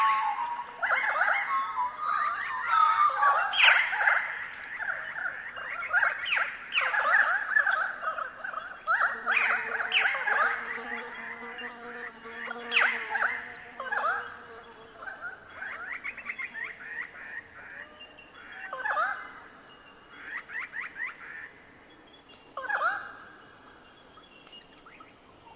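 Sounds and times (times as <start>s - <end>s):
Pied currawongs calling in eucalypt forest: 0.0s - 25.5s
bees buzzing in eucalypt forest: 9.0s - 16.6s.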